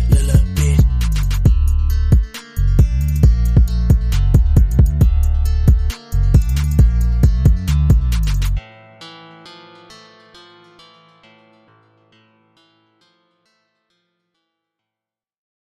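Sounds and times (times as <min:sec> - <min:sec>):
remix music: 0:00.0 - 0:11.3.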